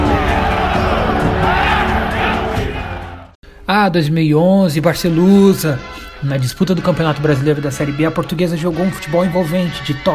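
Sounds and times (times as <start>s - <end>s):
football fans cheering and chanting: 0.0s - 3.4s
speech: 3.7s - 10.1s.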